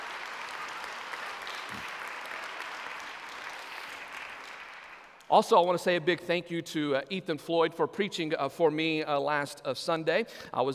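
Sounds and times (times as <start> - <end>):
audience applause: 0.0 - 5.3
speech: 5.3 - 10.7.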